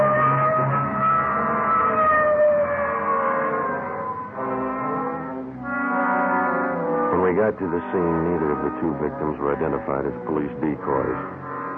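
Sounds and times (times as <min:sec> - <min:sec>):
police car siren: 0:00.0 - 0:11.7
speech: 0:07.4 - 0:11.4.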